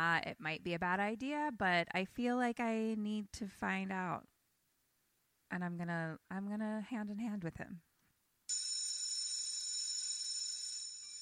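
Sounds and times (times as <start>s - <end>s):
speech: 0.0s - 4.3s, 5.5s - 7.9s
shrill electric school bell ringing: 8.5s - 11.2s.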